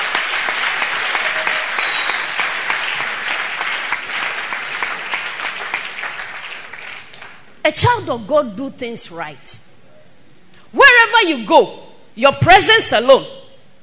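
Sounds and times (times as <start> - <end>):
audience applause: 0.0 - 7.4
speech: 7.6 - 9.6, 11.2 - 13.4.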